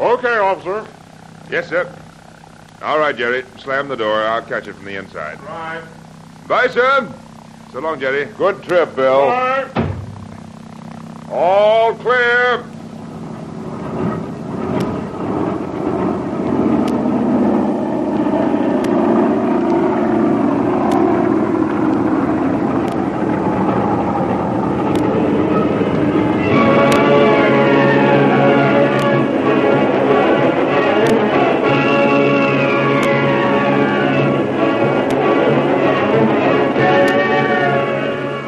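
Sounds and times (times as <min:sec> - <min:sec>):
rising engine whine: 0:00.0 - 0:38.4
speech: 0:00.1 - 0:02.0, 0:02.8 - 0:09.8, 0:11.3 - 0:12.8
big passenger airliner taking off from a long concrete runway: 0:08.9 - 0:38.4.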